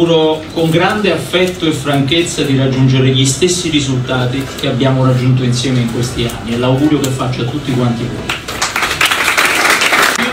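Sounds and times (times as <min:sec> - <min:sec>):
speech: 0:00.0 - 0:08.4
audience applause: 0:08.3 - 0:10.3.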